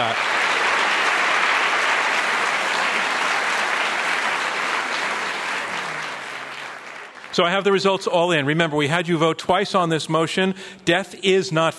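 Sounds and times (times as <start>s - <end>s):
audience applause: 0.0s - 7.7s
speech: 7.4s - 11.7s.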